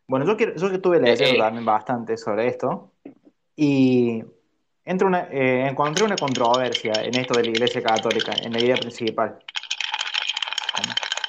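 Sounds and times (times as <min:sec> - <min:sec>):
speech: 0:00.1 - 0:02.9, 0:03.6 - 0:09.6, 0:10.8 - 0:11.1
ice cubes rattling in a glass: 0:05.8 - 0:11.2.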